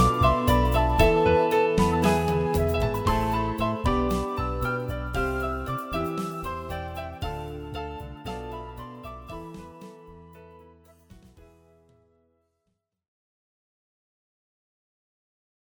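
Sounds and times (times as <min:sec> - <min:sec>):
piano piece: 0:00.0 - 0:12.2.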